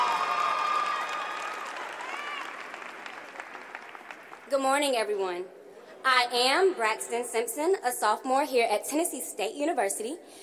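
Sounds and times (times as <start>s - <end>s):
high voices cheering: 0.0s - 3.5s
audience applause: 0.0s - 4.5s
speech: 4.5s - 10.4s.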